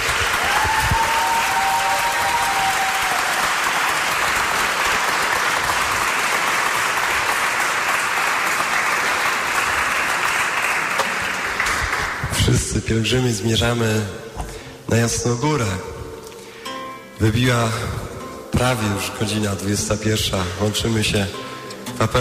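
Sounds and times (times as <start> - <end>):
audience applauding the band: 0.0 - 12.5
speech: 12.9 - 14.2, 14.9 - 15.9, 17.2 - 22.1.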